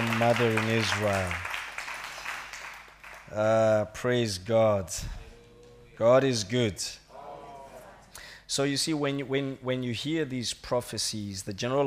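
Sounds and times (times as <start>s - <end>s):
audience clapping: 0.0s - 3.6s
speech: 0.2s - 1.5s, 3.3s - 5.2s, 6.0s - 7.0s, 8.5s - 11.8s.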